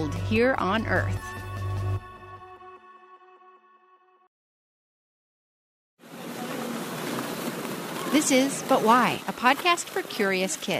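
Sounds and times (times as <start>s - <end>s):
speech: 0.0s - 1.4s, 8.1s - 10.7s
ice skating: 6.2s - 10.7s.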